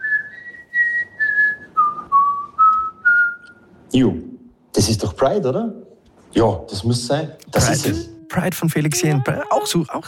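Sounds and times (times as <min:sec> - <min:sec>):
person whistling a song melody: 0:00.0 - 0:03.7
speech: 0:04.0 - 0:04.2, 0:04.8 - 0:10.0.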